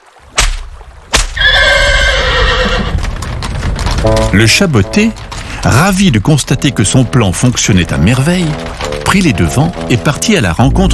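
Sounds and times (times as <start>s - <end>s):
horse hooves clip-clopping: 0.4s - 10.9s
horse pulling a royal carriage whinnying: 1.4s - 3.1s
speech: 4.3s - 10.9s.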